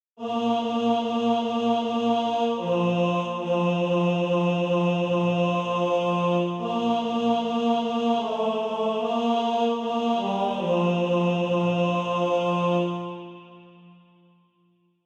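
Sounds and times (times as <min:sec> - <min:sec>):
tenor voice singing SATB practice music: 0:00.2 - 0:13.5.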